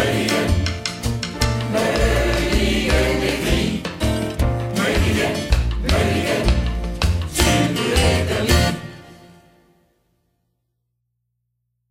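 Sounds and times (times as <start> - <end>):
upbeat calypso music: 0.0 - 9.4.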